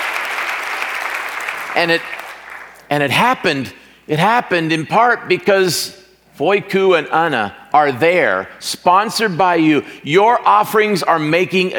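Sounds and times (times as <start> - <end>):
audience applauding: 0.0 - 2.8
speech: 1.8 - 2.2, 2.9 - 11.7.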